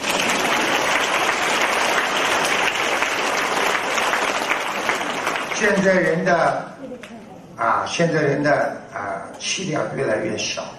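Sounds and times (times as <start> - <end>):
audience applause: 0.0 - 6.2
speech: 5.6 - 10.7.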